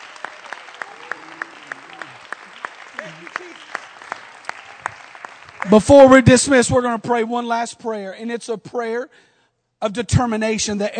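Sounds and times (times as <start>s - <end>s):
audience clapping hands: 0.0s - 6.5s
speech: 5.6s - 10.9s.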